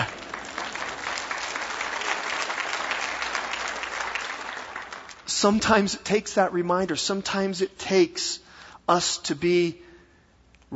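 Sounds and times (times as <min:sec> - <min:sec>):
audience clapping: 0:00.0 - 0:05.9
speech: 0:05.4 - 0:09.8.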